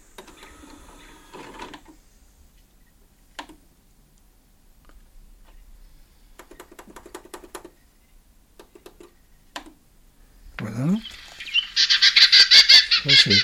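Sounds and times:
Western Orphean warbler calls: 10.7s - 13.4s.

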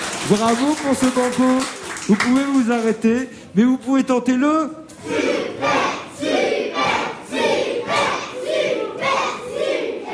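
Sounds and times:
speech: 0.3s - 5.8s
children in a game show audience cheering on a quiz contestant: 4.9s - 10.1s.

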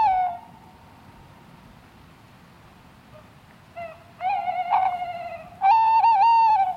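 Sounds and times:
male owl giving territorial song at night in woodland: 3.1s - 6.7s.

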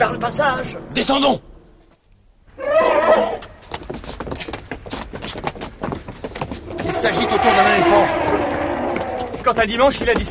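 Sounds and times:
speech: 0.0s - 1.5s, 7.0s - 8.6s, 9.4s - 10.2s
horse whinnying: 2.6s - 3.4s, 6.6s - 9.5s
hoof clops on a hard surface: 3.1s - 10.2s.

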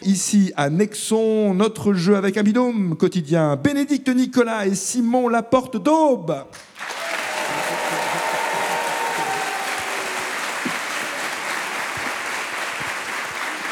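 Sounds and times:
speech: 0.0s - 6.9s
large crowd applauding in full hall: 6.6s - 13.6s
brief cheers: 6.9s - 11.2s.

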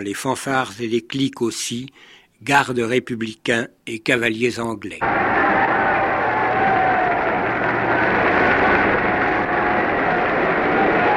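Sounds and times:
speech: 0.0s - 5.4s
crowd cheering and acclaiming: 5.0s - 11.1s.

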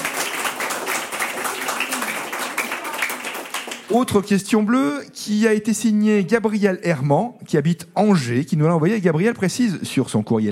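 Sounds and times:
audience applause: 0.0s - 4.1s
speech: 3.9s - 10.5s.

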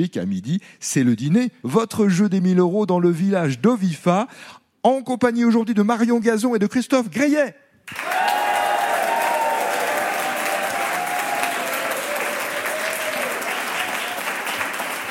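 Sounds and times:
speech: 0.0s - 8.4s
audience applause welcoming guests: 7.9s - 15.0s.

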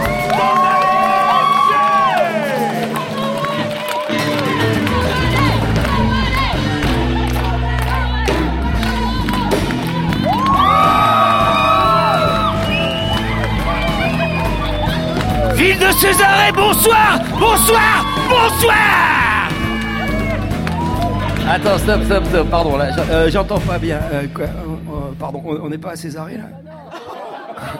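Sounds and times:
audience cheering, whooping and applauding: 0.0s - 22.1s
speech: 16.1s - 19.2s, 21.5s - 27.7s
laughter: 26.7s - 27.7s.

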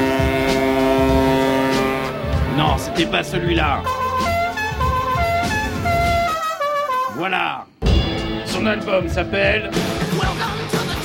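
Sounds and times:
car horn sound in a song: 0.0s - 7.3s
speech: 3.0s - 4.0s, 7.2s - 7.7s, 8.6s - 10.5s.

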